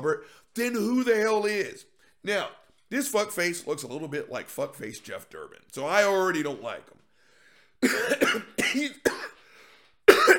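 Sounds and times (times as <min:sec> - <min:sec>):
speech: 0:00.0 - 0:07.0, 0:07.8 - 0:09.4
harsh raspy coughing: 0:07.8 - 0:10.3.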